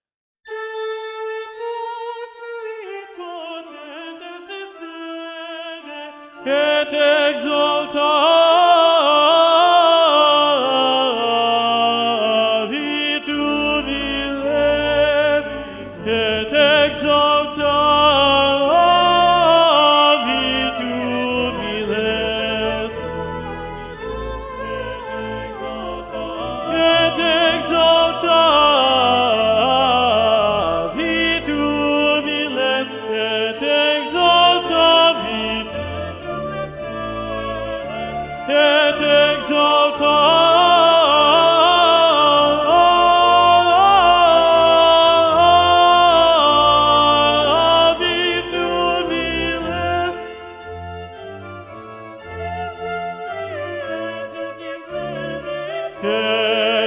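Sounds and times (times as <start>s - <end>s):
tenor voice: 5.8s - 50.6s.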